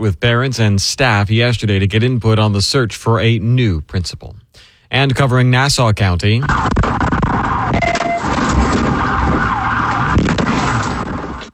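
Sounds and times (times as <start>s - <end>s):
speech: 0.0s - 6.8s
police vehicle siren in a pursuit in Fernandina Beach: 7.3s - 11.4s.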